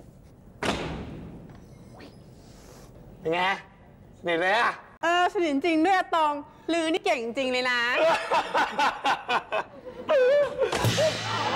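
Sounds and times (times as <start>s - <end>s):
door slammed hard to close it: 0.6s - 1.5s
speech: 3.2s - 11.5s
laughter: 8.0s - 11.5s.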